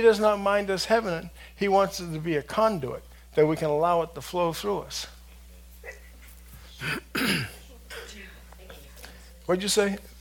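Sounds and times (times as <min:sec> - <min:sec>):
speech: 0:00.0 - 0:05.2, 0:06.8 - 0:07.6, 0:09.5 - 0:10.1
woman sneezing: 0:05.8 - 0:08.2.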